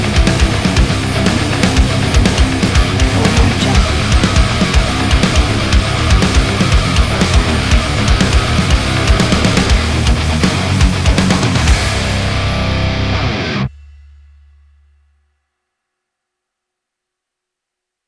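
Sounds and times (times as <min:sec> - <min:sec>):
intense groove music: 0:00.0 - 0:14.2.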